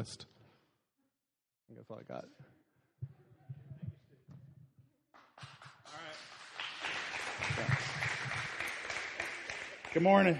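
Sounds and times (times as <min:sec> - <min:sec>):
speech: 0:00.0 - 0:00.3, 0:01.7 - 0:03.1, 0:10.0 - 0:10.3
audience clapping: 0:05.1 - 0:10.3.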